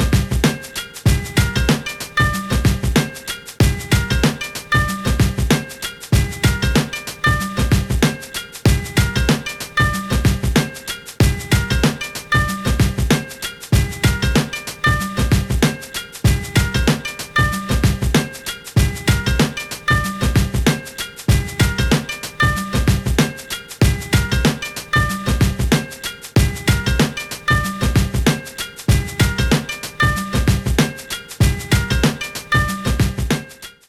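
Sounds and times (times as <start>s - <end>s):
valiha beat background music: 0.0s - 33.8s.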